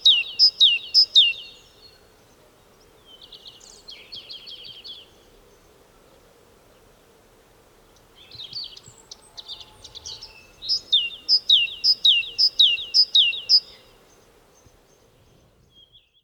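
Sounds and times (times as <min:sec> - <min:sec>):
great tit Parus major singing: 0:00.0 - 0:01.7, 0:08.3 - 0:14.7.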